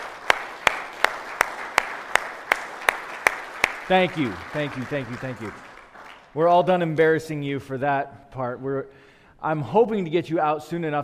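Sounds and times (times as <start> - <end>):
audience applause: 0.0 - 6.4
speech: 3.9 - 5.7, 6.3 - 11.0.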